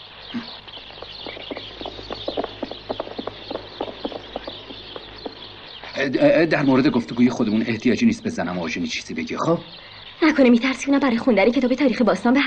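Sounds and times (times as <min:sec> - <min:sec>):
speech: 0:00.3 - 0:00.6, 0:06.0 - 0:12.4
low hum: 0:00.4 - 0:07.5
horse hooves clip-clopping during a ride: 0:00.5 - 0:06.8.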